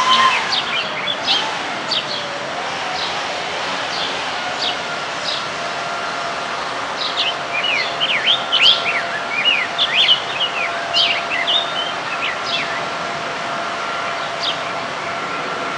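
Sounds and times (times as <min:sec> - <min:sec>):
Rose-breasted grosbeak song: 0:00.0 - 0:15.3.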